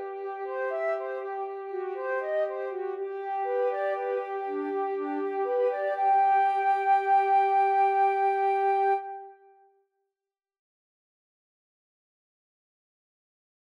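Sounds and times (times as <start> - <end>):
flute duet: 0.0 - 9.6.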